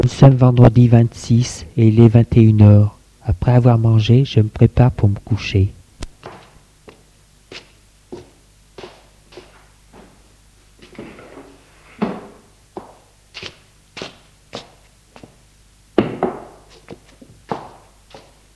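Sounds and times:
speech: 0.2 - 5.8
knocking on a door: 16.0 - 16.6.

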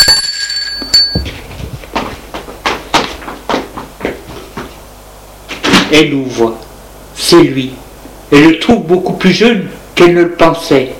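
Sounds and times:
doorbell chime: 0.0 - 1.3
speech: 5.9 - 10.9.

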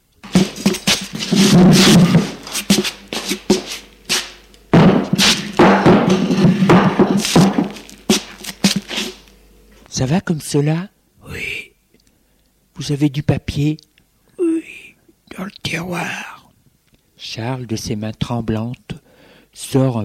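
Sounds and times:
wooden table dragged, carried and set down: 0.2 - 9.2
speech: 10.2 - 11.0, 12.8 - 13.9, 15.4 - 16.3, 17.2 - 19.0, 19.6 - 20.0.

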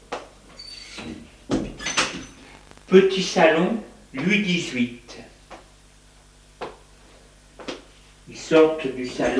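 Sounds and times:
door opening: 0.6 - 2.4
speech: 2.9 - 5.3, 8.5 - 9.3.

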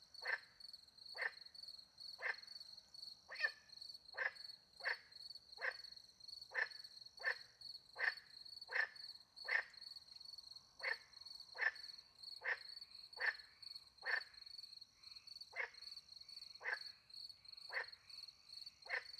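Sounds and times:
shrill cricket chorus: 0.0 - 19.1
frog croaking: 0.2 - 0.5, 2.2 - 2.4, 6.5 - 9.8, 10.8 - 11.0, 11.6 - 13.4, 14.0 - 14.3, 15.5 - 15.8, 16.6 - 16.9, 18.8 - 19.1.

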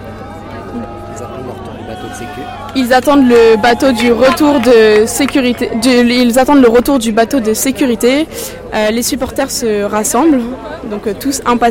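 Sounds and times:
students chattering among themselves at a boat race: 0.0 - 11.6
speech: 0.7 - 11.6.

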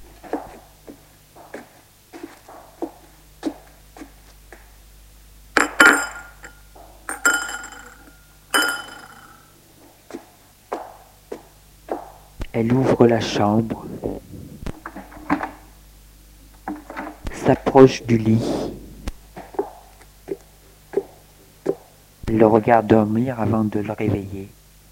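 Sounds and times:
faint low hum: 0.0 - 9.6, 11.7 - 21.5
dishes and glasses clinking as breakfast is prepared in a kitchen: 5.6 - 9.5
speech: 12.6 - 13.9, 17.5 - 18.7, 22.5 - 24.6.

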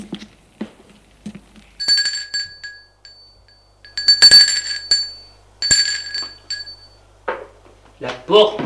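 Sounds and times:
office bell ringing: 1.8 - 7.0
speech: 8.3 - 8.6.

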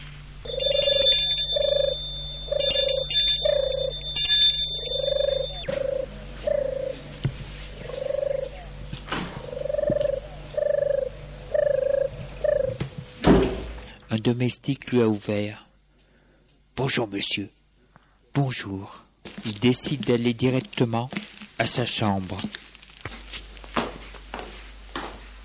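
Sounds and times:
mid-pitched buzzing tones: 0.0 - 13.9
front door bell ringing: 0.4 - 6.9
speech: 14.2 - 15.6, 16.8 - 17.6, 18.4 - 22.6.

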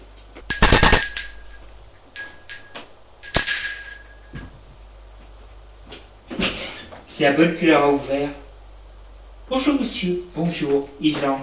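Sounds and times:
apartment doorbell ringing: 0.5 - 4.6
speech: 7.2 - 8.4, 9.5 - 11.4.

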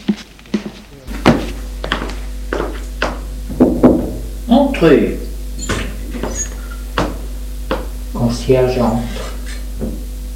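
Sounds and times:
low steady hum: 0.1 - 10.3
dull hollow knocks on a door: 3.0 - 4.2
speech: 4.8 - 5.2, 8.5 - 9.2.

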